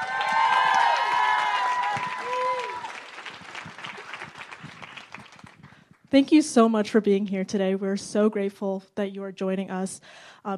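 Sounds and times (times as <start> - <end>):
crowd voices and cheers: 0.0 - 5.6
audience applause welcoming two guests onstage: 0.0 - 6.0
speech: 6.1 - 10.5.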